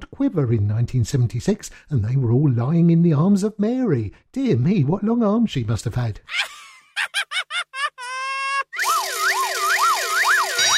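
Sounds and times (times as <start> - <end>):
speech: 0.2 - 6.5
laughter: 6.3 - 8.8
electronic siren warning effect beeping pulses: 8.8 - 10.7
wailing siren sound effect introducing a radio pop puzzle: 8.8 - 10.7.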